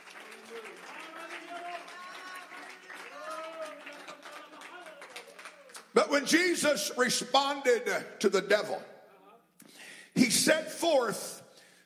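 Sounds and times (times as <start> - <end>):
audience clapping: 0.0 - 6.6
speech: 6.0 - 8.9, 10.5 - 11.3.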